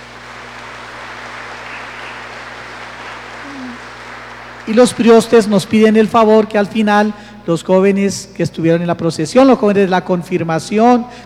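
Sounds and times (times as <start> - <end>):
audience applause: 0.0 - 6.4
speech: 4.7 - 11.2.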